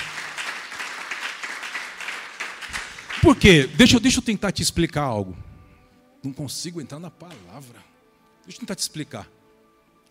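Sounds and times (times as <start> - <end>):
audience applauding: 0.0 - 4.2
speech: 3.2 - 5.5, 6.2 - 9.4.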